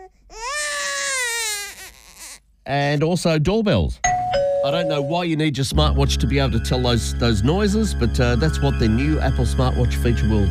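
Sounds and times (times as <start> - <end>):
baby crying: 0.0 - 2.5
speech: 2.6 - 10.4.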